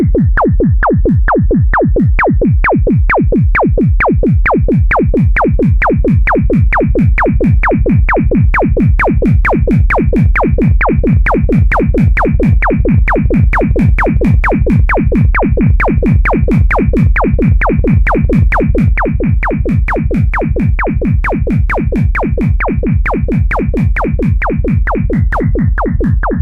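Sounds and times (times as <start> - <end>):
heartbeat kick drum: 0.0 - 26.4.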